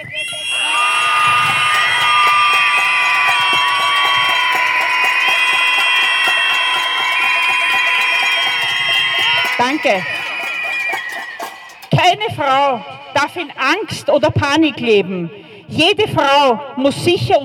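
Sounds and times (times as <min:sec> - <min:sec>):
protest crowd screaming together: 0:00.0 - 0:13.1
speech: 0:09.6 - 0:10.2, 0:12.2 - 0:17.4.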